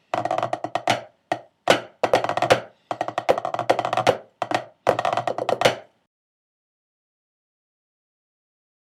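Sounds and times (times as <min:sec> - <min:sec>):
tenor snare drum: 0:00.0 - 0:05.9.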